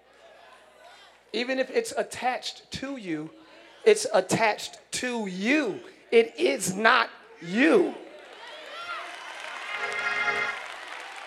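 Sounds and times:
speech: 1.3s - 8.0s
audience clapping: 8.1s - 11.2s.

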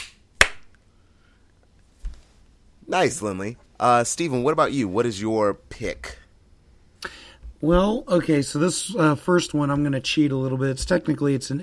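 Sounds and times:
group of people clapping in unison: 0.0s - 0.7s
speech: 2.9s - 6.2s, 7.0s - 11.6s.

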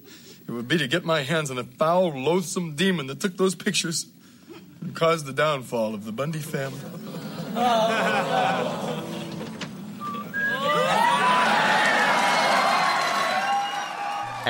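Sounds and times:
speech: 0.5s - 4.2s, 4.8s - 9.1s
laughter: 6.7s - 9.6s, 10.2s - 13.2s
audience whistles: 10.0s - 14.3s
sitcom studio audience cheering and whooping: 10.3s - 14.4s.

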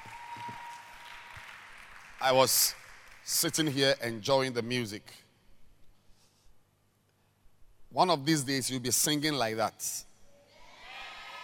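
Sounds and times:
audience clapping hands: 0.0s - 4.0s
speech: 2.2s - 5.2s, 7.9s - 10.1s.

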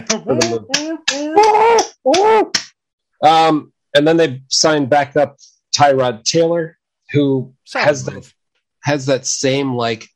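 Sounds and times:
speech: 0.0s - 2.6s, 3.2s - 10.1s
hand claps imitating a seal clapping: 0.0s - 2.8s.

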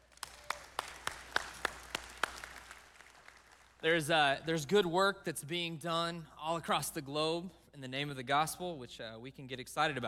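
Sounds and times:
audience applause: 0.0s - 3.8s
speech: 3.8s - 10.0s.

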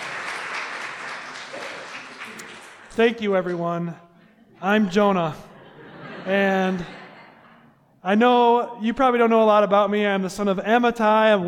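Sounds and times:
round of applause from a crowd: 0.0s - 3.6s
speech: 3.0s - 5.5s, 6.2s - 7.0s, 8.0s - 11.4s
laughter: 4.2s - 7.8s.

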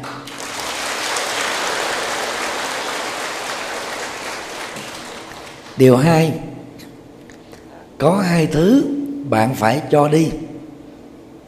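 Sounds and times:
audience applause: 0.3s - 5.8s
speech: 5.8s - 6.5s, 8.0s - 10.4s.

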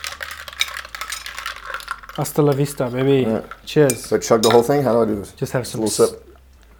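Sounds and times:
spoon clinking against glass: 0.0s - 2.7s, 3.4s - 4.9s
spoon stirring a drink: 0.0s - 6.1s
speech: 2.2s - 6.3s.

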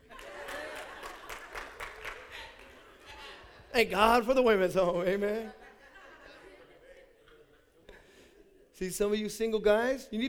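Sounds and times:
crowd applauding: 0.0s - 3.7s
laughter: 0.0s - 4.0s, 5.1s - 8.2s
speech: 3.8s - 5.6s, 8.8s - 10.2s.

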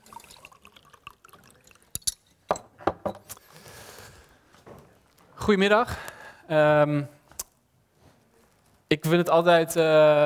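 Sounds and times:
glass of water being poured: 0.0s - 2.2s
glass of water being handled: 0.0s - 3.4s
speech: 5.5s - 7.2s, 9.0s - 10.2s.

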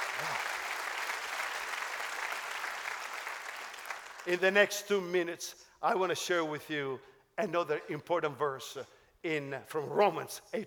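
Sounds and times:
audience applause: 0.0s - 4.3s
speech: 4.2s - 10.6s.

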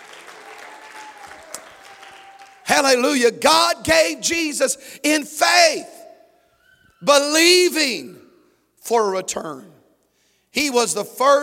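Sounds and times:
church congregation clapping during a worship service: 0.0s - 3.2s
speech: 2.8s - 6.0s, 7.0s - 8.2s, 8.8s - 9.7s, 10.5s - 11.4s.

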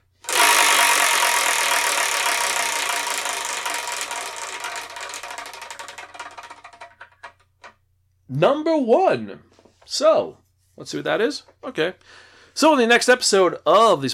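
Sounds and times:
numbered prize wheel spinning: 0.0s - 7.7s
speech: 8.3s - 14.1s.

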